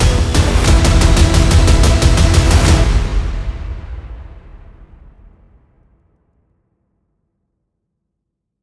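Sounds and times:
tension bass effect pad: 0.0 - 4.2.

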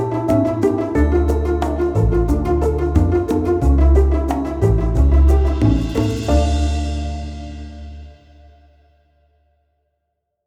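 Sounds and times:
cheerful entertainment pizzicato strings: 0.0 - 8.2.

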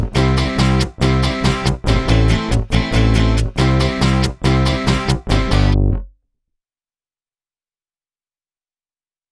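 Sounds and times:
cheerful guitar comping: 0.0 - 6.0.

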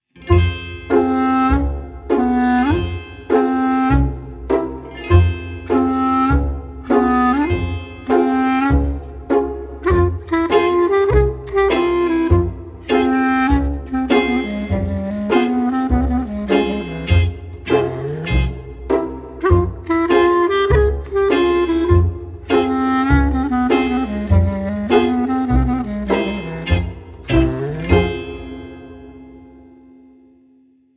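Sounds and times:
sweet acoustic guitar pizzicato: 0.2 - 28.6.

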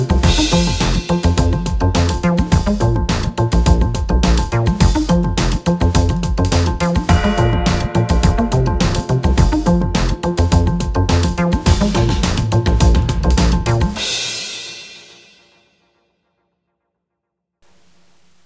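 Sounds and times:
1980s music without strings: 0.0 - 14.2.

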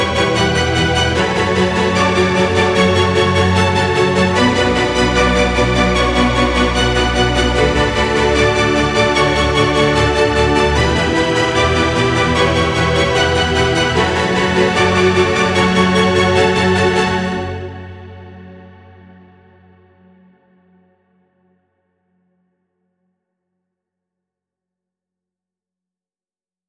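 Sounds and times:
dramatic violin composition: 0.0 - 18.7.

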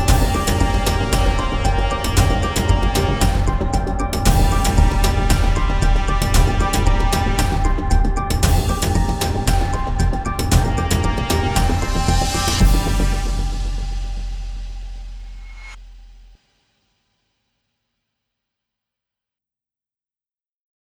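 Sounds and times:
epic cinematic music: 0.0 - 15.8.

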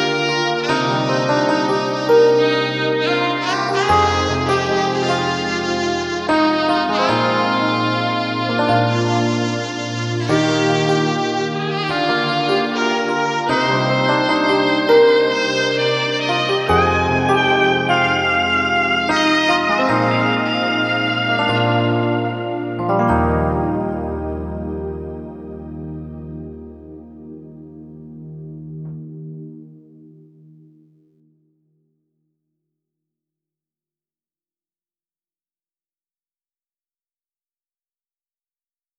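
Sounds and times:
saxophone power ballad: 0.0 - 29.9.

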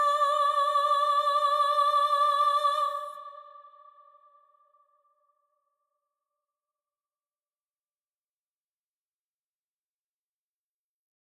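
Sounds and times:
cinematic vocal composition: 0.0 - 4.6.

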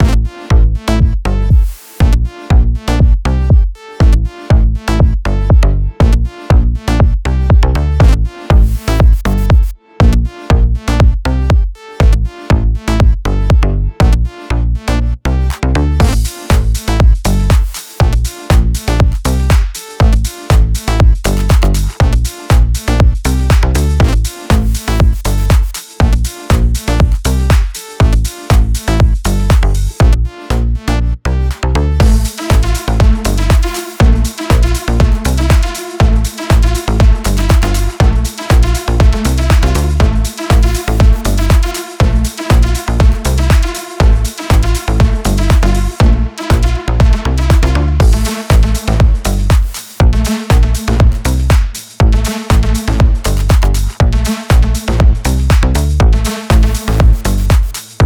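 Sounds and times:
deep house music: 0.0 - 58.0.

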